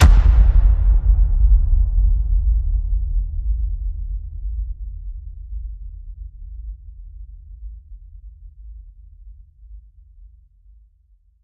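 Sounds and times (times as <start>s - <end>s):
low hit: 0.0s - 5.8s.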